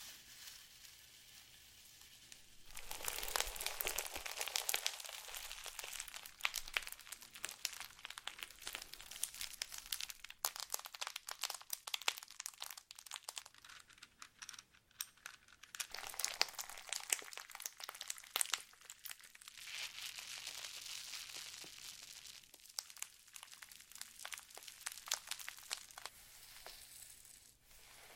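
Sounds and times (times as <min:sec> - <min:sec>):
slime squished crackling and popping: 0:02.8 - 0:13.5, 0:15.9 - 0:26.1.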